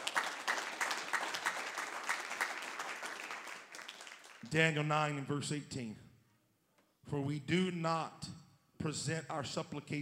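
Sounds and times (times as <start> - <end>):
audience clapping hands: 0.0 - 4.5
speech: 4.5 - 6.0, 7.1 - 10.0.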